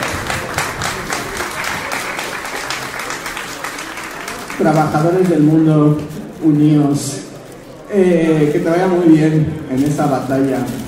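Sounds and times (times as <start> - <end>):
crowd giving encouraging applause: 0.0 - 5.7
speech: 4.6 - 7.3, 7.9 - 10.8.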